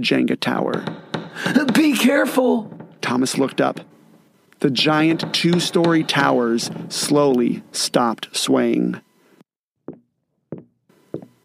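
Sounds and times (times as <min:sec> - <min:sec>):
speech: 0:00.0 - 0:03.9, 0:04.6 - 0:09.1
heavy footsteps outside: 0:00.8 - 0:07.6.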